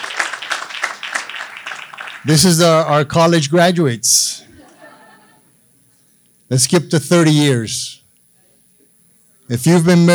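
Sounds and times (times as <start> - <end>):
laughter: 0.0 - 3.0, 4.4 - 5.6
crowd applauding: 0.0 - 3.4
speech: 2.2 - 4.4, 6.5 - 8.0, 9.5 - 10.1.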